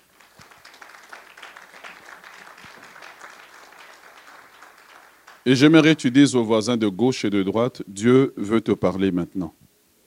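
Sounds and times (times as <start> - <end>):
congregation applauding during a church service: 0.0 - 6.3
speech: 5.5 - 9.6.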